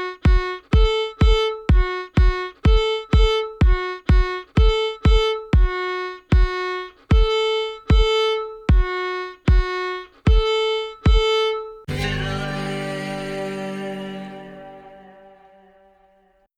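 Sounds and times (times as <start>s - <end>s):
fiddle playing intervals: 0.0s - 16.0s.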